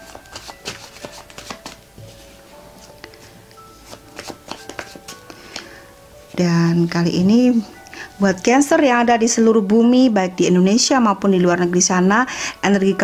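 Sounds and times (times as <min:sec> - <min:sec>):
deck of cards being shuffled: 0:00.0 - 0:02.2, 0:03.8 - 0:05.4
speech: 0:06.4 - 0:13.0.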